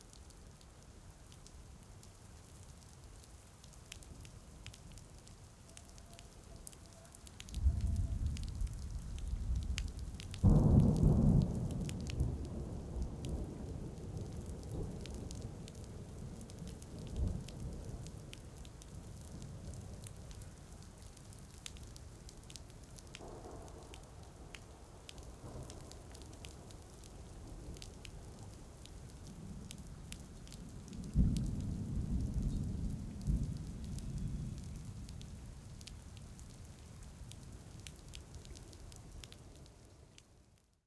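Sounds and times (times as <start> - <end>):
soft rain: 0.0 - 40.8
thunder: 7.5 - 17.8, 31.0 - 35.4.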